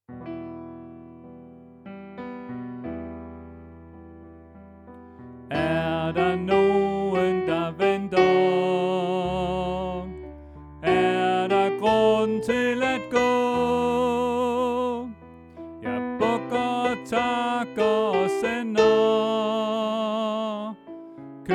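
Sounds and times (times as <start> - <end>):
soprano voice: 5.5 - 10.2, 10.8 - 20.9.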